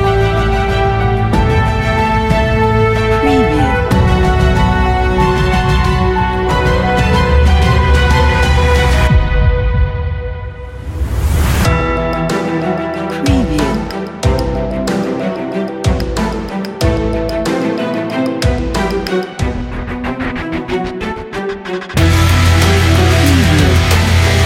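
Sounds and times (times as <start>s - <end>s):
dramatic trailer music: 0.0s - 24.4s.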